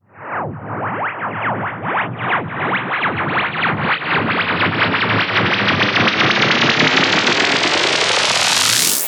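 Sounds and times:
rising sweep effect: 0.2s - 9.0s.

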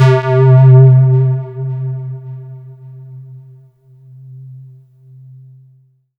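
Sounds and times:
synth line in C4: 0.0s - 3.0s.

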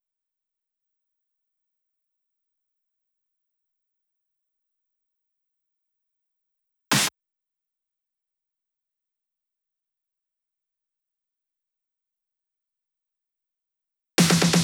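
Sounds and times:
drum loop fills at 128 BPM: 6.9s - 7.1s, 14.2s - 14.6s.

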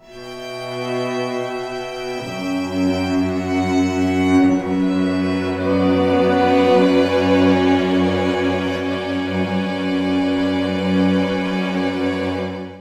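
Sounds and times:
strings in B minor: 0.0s - 12.7s.

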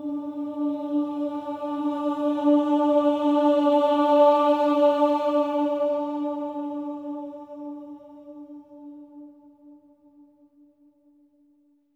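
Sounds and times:
choir voices: 0.0s - 10.3s.

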